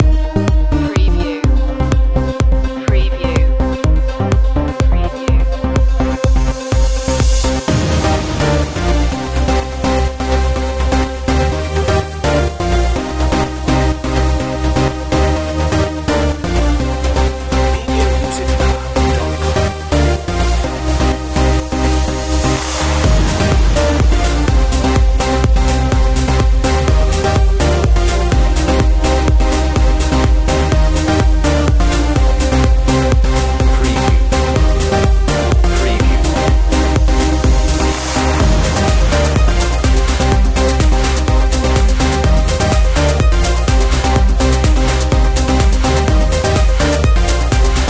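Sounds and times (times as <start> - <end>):
Swedish trance music: 0.0 - 47.8.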